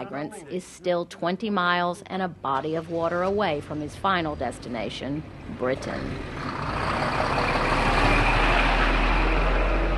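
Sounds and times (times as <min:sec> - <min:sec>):
speech: 0:00.1 - 0:07.1
trucks at a diesel truck stop next to the port of Calais: 0:03.9 - 0:09.9.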